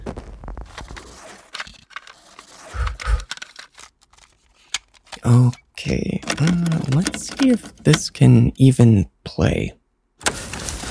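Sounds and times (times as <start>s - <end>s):
rubbing and scraping while cleaning a mud-caked cassette tape: 0.0s - 8.1s
speech: 5.3s - 9.8s.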